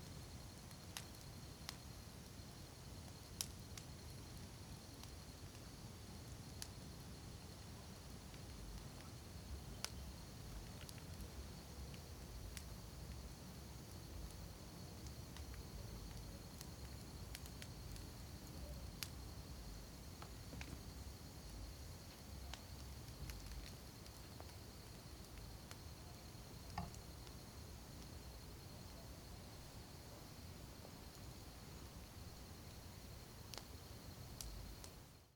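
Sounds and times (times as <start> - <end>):
campfire wood crackling at night: 0.0 - 35.3
crickets chirping: 0.0 - 35.3.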